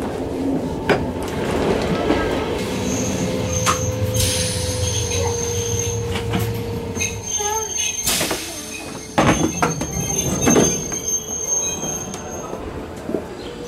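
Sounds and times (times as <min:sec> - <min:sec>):
train carriages rumbling: 0:00.0 - 0:13.6
metal train wheels squealing at Montreux railway station in Switzerland: 0:02.6 - 0:12.8.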